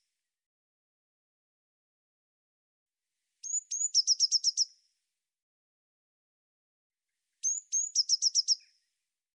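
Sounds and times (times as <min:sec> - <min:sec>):
Eurasian blue tit thin high whistled notes: 0:03.4 - 0:04.8, 0:07.4 - 0:08.9.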